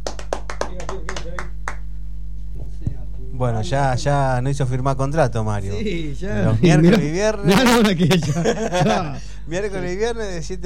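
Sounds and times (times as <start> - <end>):
scattered applause: 0.0 - 1.8
speech: 3.4 - 10.6
laughter: 6.6 - 9.5.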